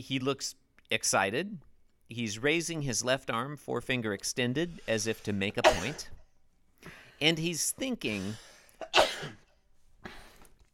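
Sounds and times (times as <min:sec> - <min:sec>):
speech: 0:00.0 - 0:06.2, 0:06.8 - 0:09.4
loud sneeze: 0:05.6 - 0:06.2, 0:08.2 - 0:09.5.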